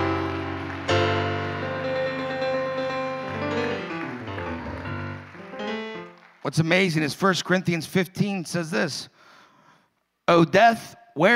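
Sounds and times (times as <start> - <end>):
audience clapping hands: 0.0 - 7.4
speech: 6.5 - 9.2, 10.3 - 11.3.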